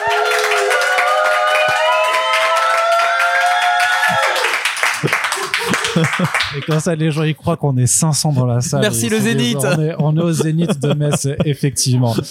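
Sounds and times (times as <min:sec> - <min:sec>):
crowd cheering and whooping: 0:00.0 - 0:06.0
crowd applause: 0:00.0 - 0:06.9
laughter: 0:04.0 - 0:06.8, 0:08.4 - 0:12.3
speech: 0:06.0 - 0:12.3.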